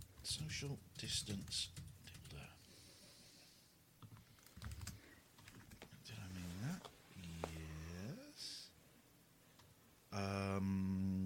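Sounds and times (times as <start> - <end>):
speech: 0.2 - 2.6, 10.2 - 11.2
faint hiss: 0.2 - 4.0, 5.9 - 11.2
typing on a computer keyboard: 1.0 - 2.5, 4.0 - 5.9.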